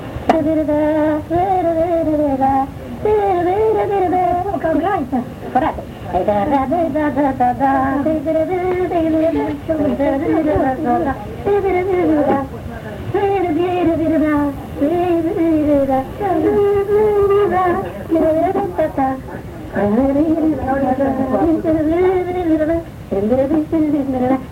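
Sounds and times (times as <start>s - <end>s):
Vaslui folk polka dance music with singing: 0.0s - 24.5s.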